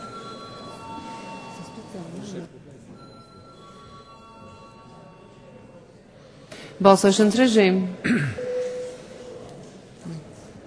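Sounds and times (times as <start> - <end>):
parliament voting bell ringing: 0.0 - 2.2, 3.0 - 5.8
speech: 2.0 - 2.7, 6.8 - 8.4.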